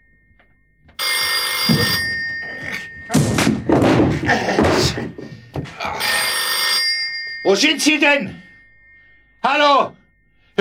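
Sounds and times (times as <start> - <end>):
telephone bell ringing: 0.0 - 10.5
heavy thumps and clattering: 1.6 - 5.9
speech: 7.5 - 8.4, 9.4 - 10.0.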